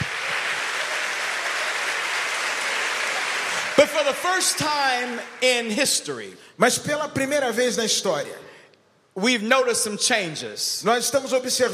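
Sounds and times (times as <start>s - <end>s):
audience applauding: 0.0s - 5.8s
speech: 3.8s - 8.5s, 9.2s - 11.7s.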